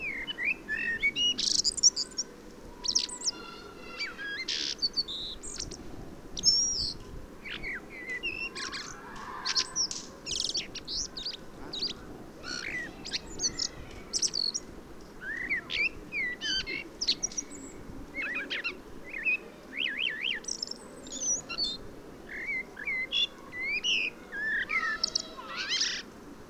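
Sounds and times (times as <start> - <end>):
common blackbird song: 0.0 - 26.2.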